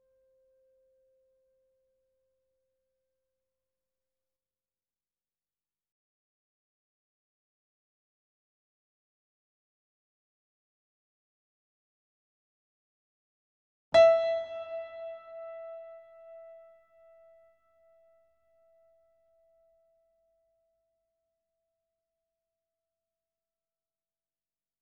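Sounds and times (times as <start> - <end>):
grand piano playing C5 E5 A5: 14.0 - 17.4.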